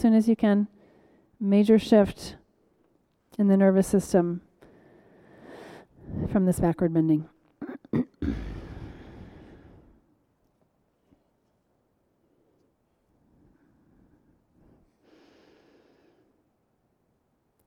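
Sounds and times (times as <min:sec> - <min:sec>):
speech: 0:00.0 - 0:00.8, 0:01.4 - 0:02.4, 0:03.4 - 0:04.5, 0:06.1 - 0:07.3, 0:07.9 - 0:08.6
nasal breathing during a yoga exercise: 0:04.6 - 0:06.3, 0:08.4 - 0:10.0, 0:13.2 - 0:16.4.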